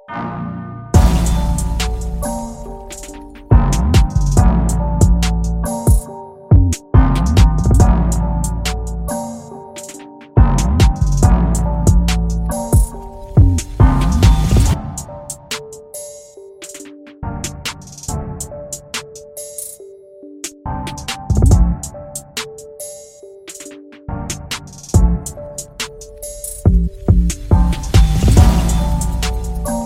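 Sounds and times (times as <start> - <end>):
drill trap beat: 1.0 - 16.8, 24.3 - 29.8.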